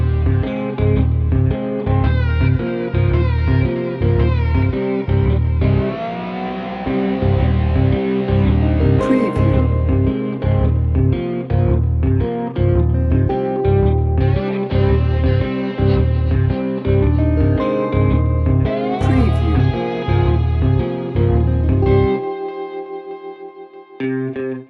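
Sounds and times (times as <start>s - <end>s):
tense swampy music without drums: 0.1s - 22.8s.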